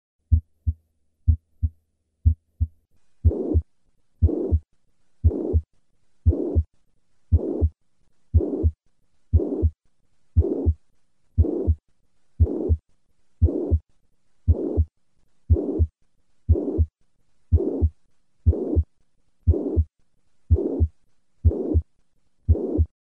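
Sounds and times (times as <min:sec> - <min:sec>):
heartbeat with systolic murmur of mitral regurgitation: 0:00.3 - 0:03.6, 0:04.2 - 0:04.6, 0:05.2 - 0:06.7, 0:07.3 - 0:07.8, 0:08.4 - 0:09.8, 0:10.4 - 0:10.8, 0:11.4 - 0:11.8, 0:12.4 - 0:12.8, 0:13.4 - 0:13.8, 0:14.5 - 0:14.9, 0:15.5 - 0:15.9, 0:16.5 - 0:16.9, 0:17.5 - 0:17.9, 0:18.5 - 0:18.9, 0:19.5 - 0:19.9, 0:20.5 - 0:21.9, 0:22.5 - 0:22.9.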